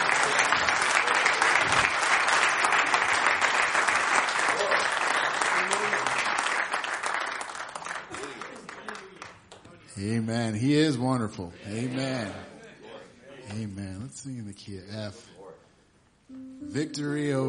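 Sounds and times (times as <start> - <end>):
audience clapping: 0.0 - 9.8
speech: 10.3 - 12.5, 13.6 - 15.4, 16.7 - 17.4.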